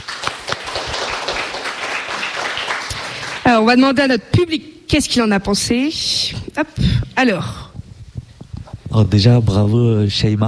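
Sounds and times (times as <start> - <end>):
audience applause after a rhymed spoken text at a show: 0.0 - 3.6
speech: 3.5 - 7.6, 9.0 - 10.4.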